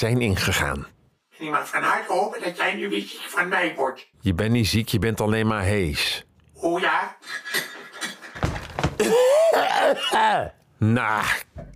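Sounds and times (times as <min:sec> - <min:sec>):
speech: 0:00.0 - 0:08.1, 0:09.0 - 0:11.7
coughing: 0:08.9 - 0:10.6.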